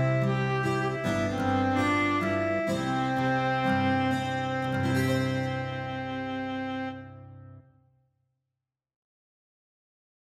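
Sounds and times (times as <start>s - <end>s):
instrumental lullaby: 0.0s - 6.9s.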